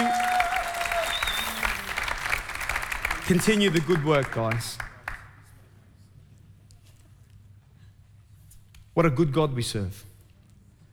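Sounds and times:
audience applause: 0:00.0 - 0:05.5
speech: 0:03.3 - 0:04.9, 0:09.0 - 0:10.1.

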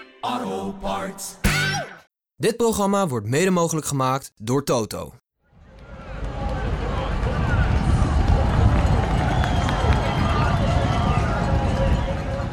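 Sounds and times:
speech: 0:00.3 - 0:01.4, 0:02.4 - 0:05.2
huge crowd of cycling fans cheering: 0:05.6 - 0:12.5
scattered whistles: 0:08.8 - 0:12.5.

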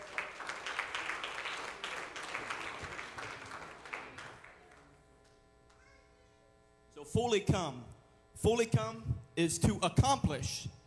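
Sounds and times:
audience clapping hands to the Lord: 0:00.0 - 0:05.8
speech: 0:07.1 - 0:10.8.

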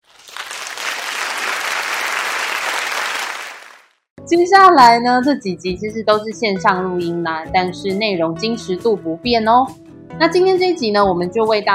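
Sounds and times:
applause: 0:00.0 - 0:04.1
speech: 0:04.3 - 0:11.7.

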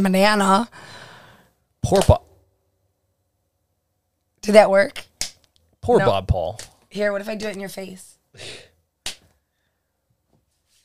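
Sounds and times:
speech: 0:00.0 - 0:01.0, 0:01.8 - 0:02.3, 0:04.4 - 0:05.1, 0:05.8 - 0:08.7
hand slapping a leg: 0:09.0 - 0:09.3.

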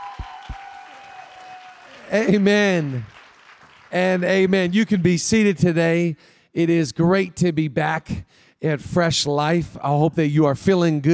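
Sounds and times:
audience clapping: 0:00.0 - 0:05.5
speech: 0:02.1 - 0:03.2, 0:03.9 - 0:11.1.

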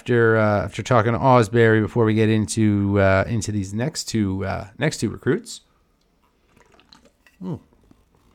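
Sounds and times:
speech: 0:00.0 - 0:05.7, 0:07.4 - 0:07.7
person sipping beer: 0:05.9 - 0:08.3.

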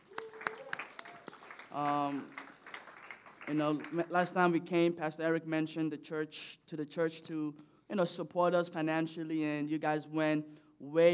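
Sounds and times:
loud cheer or whoop: 0:00.0 - 0:03.6
audience applause: 0:00.0 - 0:04.1
speech: 0:01.7 - 0:02.4, 0:03.5 - 0:11.1.

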